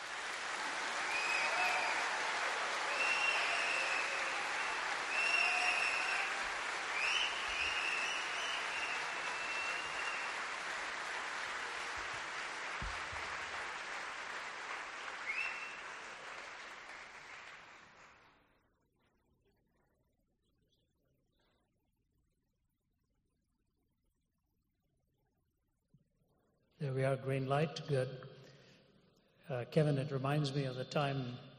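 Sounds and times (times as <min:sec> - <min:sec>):
audience applause welcoming a guest speaker: 0:00.0 - 0:18.4
speech: 0:26.8 - 0:28.3, 0:29.5 - 0:31.5.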